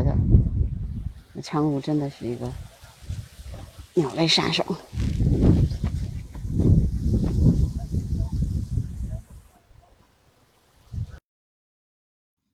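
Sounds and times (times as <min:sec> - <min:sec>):
low handling thumps on river peninsula: 0:00.0 - 0:09.9
steady airy hiss: 0:00.8 - 0:11.2
speech: 0:01.4 - 0:02.7, 0:04.0 - 0:05.5.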